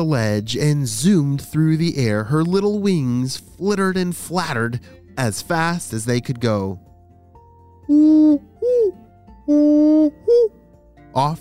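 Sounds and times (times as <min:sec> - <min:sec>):
speech: 0:00.0 - 0:06.9, 0:07.9 - 0:10.6, 0:11.2 - 0:11.4
great horned owl hooting: 0:07.8 - 0:10.6.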